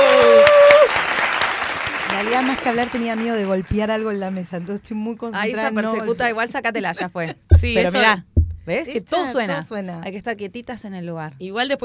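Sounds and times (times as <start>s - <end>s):
loud welcoming applause: 0.0s - 3.7s
speech: 2.4s - 11.8s
laughter: 5.6s - 8.0s.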